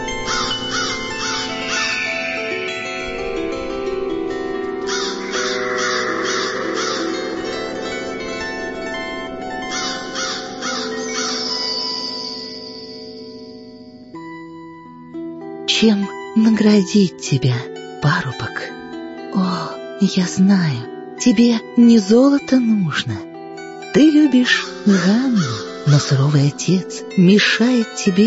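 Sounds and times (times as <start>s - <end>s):
crow cawing: 0.0s - 12.6s, 24.5s - 26.2s
speech: 15.8s - 23.3s, 23.9s - 28.2s.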